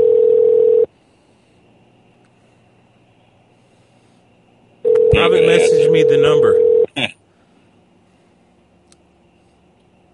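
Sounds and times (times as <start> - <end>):
telephone dial tone: 0.0 - 0.9, 4.8 - 6.9
speech: 5.2 - 7.2.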